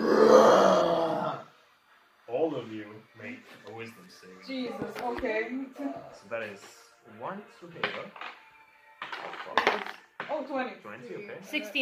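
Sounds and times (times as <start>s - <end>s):
person imitating an ogre's mighty scream: 0.0s - 1.5s
speech: 4.2s - 8.4s, 10.4s - 11.8s.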